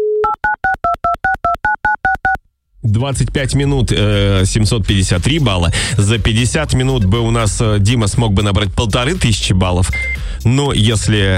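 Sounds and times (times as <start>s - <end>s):
touch-tone dialing beeps: 0.0s - 2.4s, 9.9s - 10.2s
speech: 2.8s - 11.3s.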